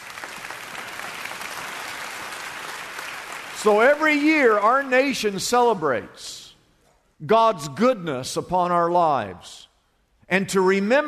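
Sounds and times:
audience applauding: 0.0s - 4.9s
speech: 3.6s - 6.4s, 7.2s - 9.7s, 10.3s - 11.0s.

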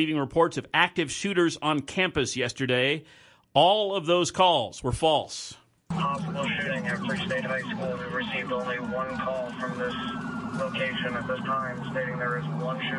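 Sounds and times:
speech: 0.0s - 12.9s
low engine rumble: 5.9s - 12.9s
police sirens as officers race to Free State High School in Lawrence: 5.9s - 12.9s.

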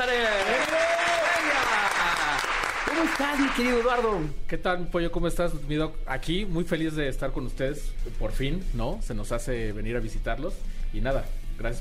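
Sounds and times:
audience applause: 0.0s - 4.1s
speech: 3.0s - 11.7s.

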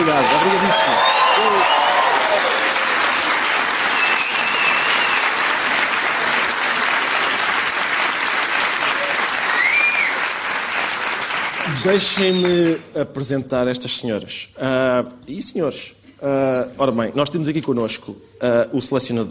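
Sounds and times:
speech: 0.0s - 0.9s, 11.8s - 19.2s
audience applause: 0.0s - 12.8s
faint whistles: 0.6s - 2.2s, 3.9s - 5.4s, 9.5s - 10.2s, 11.6s - 12.6s.

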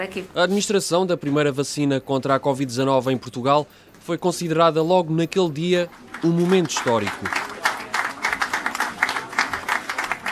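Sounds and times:
speech: 0.0s - 7.5s
applause after the first vaccination in Portugal: 5.9s - 10.3s.

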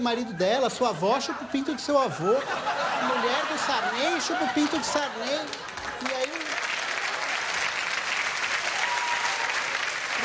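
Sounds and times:
speech: 0.0s - 6.2s
laughter: 0.1s - 6.6s
audience applause: 4.6s - 10.2s.

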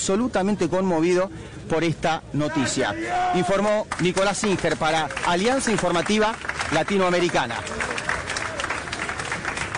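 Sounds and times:
speech: 0.0s - 7.9s
crowd applause in stadium: 3.9s - 9.7s.

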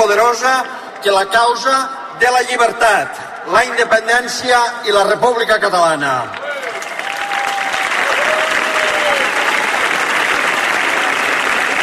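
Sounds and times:
speech: 0.1s - 6.4s
applause: 6.3s - 11.8s.

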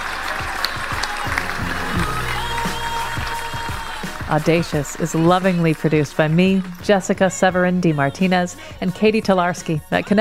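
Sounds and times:
audience applause: 0.0s - 7.8s
low musical notes: 1.1s - 7.0s
speech: 4.3s - 10.1s.

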